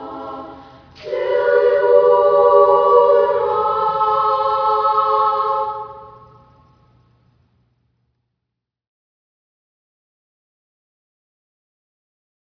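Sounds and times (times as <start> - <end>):
folk song: 0.0 - 6.6.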